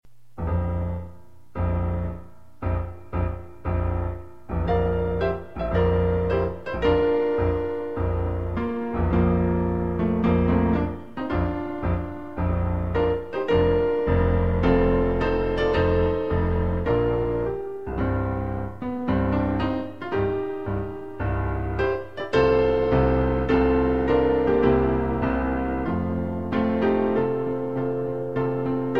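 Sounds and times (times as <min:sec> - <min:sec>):
piano medley: 0:00.1 - 0:28.9.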